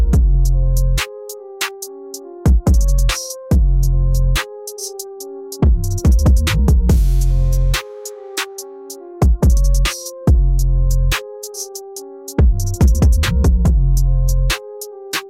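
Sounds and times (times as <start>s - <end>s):
frenzied bass assault: 0.0s - 1.0s, 2.5s - 4.4s, 5.6s - 7.8s, 9.2s - 11.2s, 12.4s - 14.6s.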